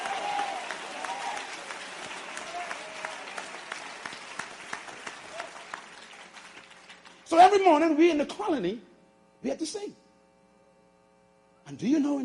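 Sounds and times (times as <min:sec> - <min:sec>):
crowd applause: 0:00.0 - 0:07.3
speech: 0:07.3 - 0:10.0, 0:11.7 - 0:12.2.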